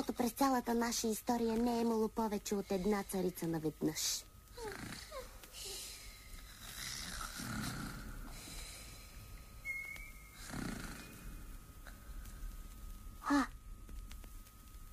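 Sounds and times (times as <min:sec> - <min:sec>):
speech: 0:00.0 - 0:05.0
two people snoring: 0:04.6 - 0:09.2, 0:10.3 - 0:11.4.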